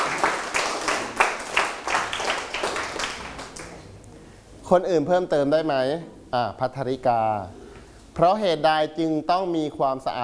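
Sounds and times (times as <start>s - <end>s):
classroom applause for a student: 0.0s - 3.9s
speech: 4.7s - 7.6s, 8.2s - 10.2s.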